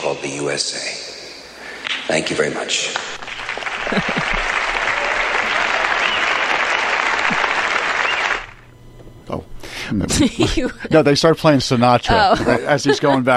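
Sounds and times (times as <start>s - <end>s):
speech: 0.1s - 1.2s, 2.1s - 4.4s, 9.9s - 13.3s
crowd applauding and cheering: 3.0s - 8.8s
laughter: 3.2s - 8.5s, 9.8s - 13.3s.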